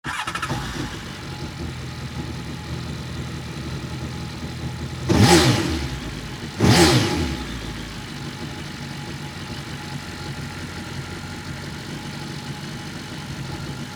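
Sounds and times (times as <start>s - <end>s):
Honda Aquatrax jet ski engine starting, idling and revving with engine cover removed: 0.1s - 13.9s.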